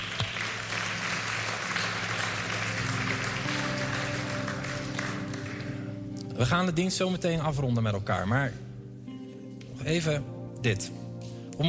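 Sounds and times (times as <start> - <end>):
audience applause: 0.0 - 6.0
speech: 6.4 - 8.6, 9.8 - 11.0.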